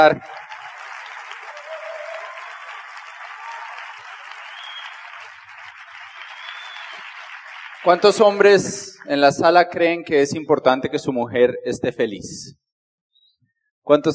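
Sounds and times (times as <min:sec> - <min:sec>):
speech: 0:00.0 - 0:00.4, 0:07.8 - 0:12.6, 0:13.8 - 0:14.1
audience applause: 0:00.0 - 0:08.9.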